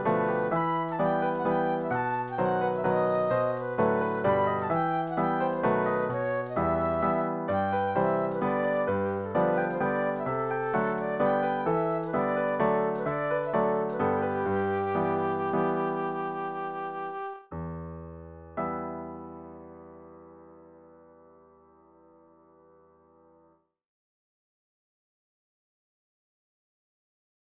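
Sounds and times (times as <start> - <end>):
Scottish polka waltz music: 0.0 - 17.4.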